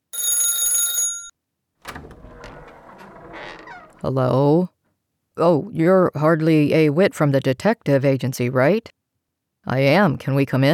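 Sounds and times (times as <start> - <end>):
doorbell ringing: 0.2 - 1.3
speech: 4.0 - 4.8, 5.4 - 9.0, 9.6 - 10.7.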